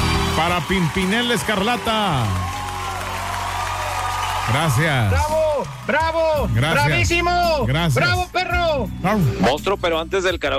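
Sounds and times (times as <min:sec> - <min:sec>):
applause: 0:00.0 - 0:07.5
speech: 0:00.4 - 0:02.6, 0:04.5 - 0:10.5.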